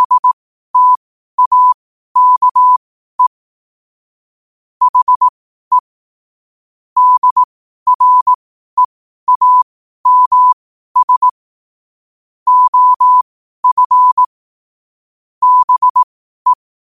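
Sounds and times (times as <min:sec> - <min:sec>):
morse code at 5 wpm: 0:00.0 - 0:03.3, 0:04.8 - 0:05.8, 0:07.0 - 0:11.4, 0:12.5 - 0:14.3, 0:15.4 - 0:16.6.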